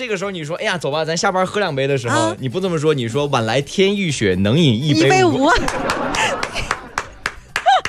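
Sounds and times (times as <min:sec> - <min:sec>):
speech: 0:00.0 - 0:06.4
people laughing: 0:05.2 - 0:07.8
person clapping hands: 0:05.6 - 0:07.8.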